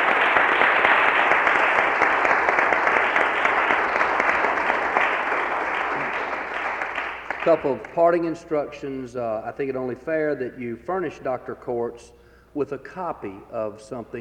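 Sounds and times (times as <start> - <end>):
audience applause: 0.0 - 7.9
speech: 7.4 - 14.1.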